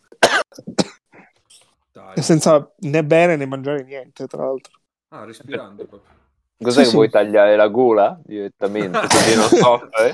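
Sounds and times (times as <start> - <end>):
coughing fit after choking: 0.1 - 1.4
speech: 2.1 - 10.1
laughter: 8.6 - 10.1.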